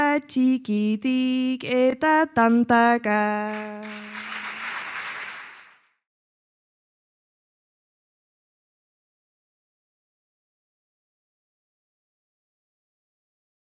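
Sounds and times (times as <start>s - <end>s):
person singing Basque improvised verse: 0.2s - 4.2s.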